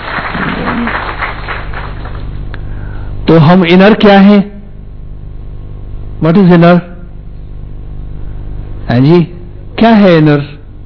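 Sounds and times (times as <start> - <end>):
audience clapping: 0.0 - 2.6
speech: 3.3 - 4.5, 6.2 - 6.9, 8.9 - 10.5.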